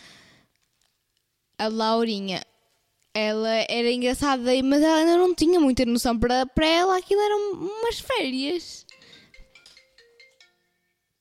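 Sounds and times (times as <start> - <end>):
speech: 1.6 - 2.5, 3.2 - 8.9
phone ringtone for an incoming call: 8.9 - 11.1.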